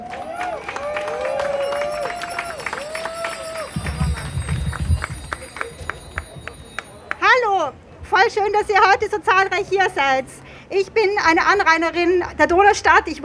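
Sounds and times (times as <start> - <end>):
audience applause at outdoor rally: 0.0 - 7.2
speech: 8.3 - 13.2.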